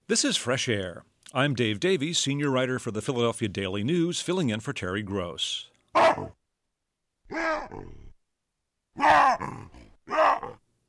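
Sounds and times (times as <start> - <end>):
speech: 0.1 - 6.4, 7.3 - 8.0
wild baboon grunts and screams: 5.9 - 6.4, 7.3 - 8.2, 9.0 - 10.6.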